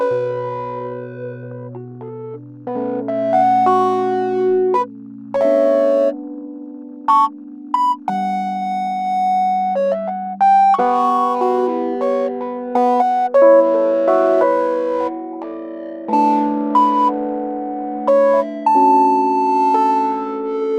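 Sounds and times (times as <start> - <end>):
improvised piano chords in B minor: 0.0 - 20.7.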